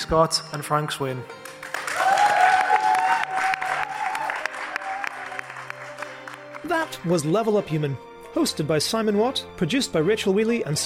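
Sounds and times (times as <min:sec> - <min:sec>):
speech: 0:00.1 - 0:01.4, 0:06.8 - 0:10.8
audience applause: 0:01.4 - 0:06.9
audience whooping and cheering: 0:01.7 - 0:06.5.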